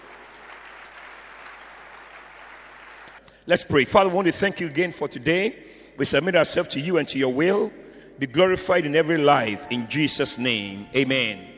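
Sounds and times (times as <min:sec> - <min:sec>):
audience clapping: 0:00.0 - 0:03.3
speech: 0:03.4 - 0:11.5.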